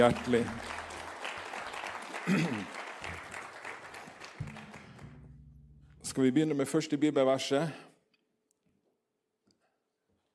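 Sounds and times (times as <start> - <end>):
speech: 0.0 - 0.8, 2.3 - 2.8, 6.2 - 7.8
church congregation clapping for the worship singers: 0.0 - 5.3.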